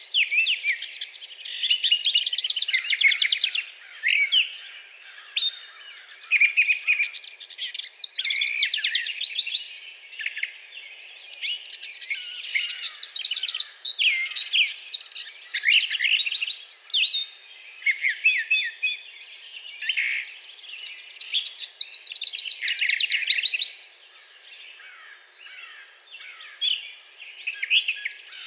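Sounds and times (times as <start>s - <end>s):
Brown thrasher singing: 0.0s - 28.4s.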